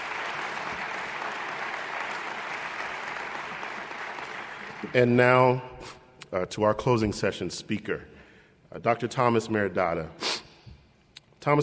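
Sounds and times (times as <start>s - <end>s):
crowd applauding: 0.0s - 5.2s
speech: 4.8s - 8.1s, 8.7s - 10.2s, 11.4s - 11.6s.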